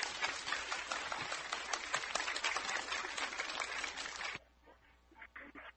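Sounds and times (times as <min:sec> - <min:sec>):
audience applause: 0:00.0 - 0:04.4.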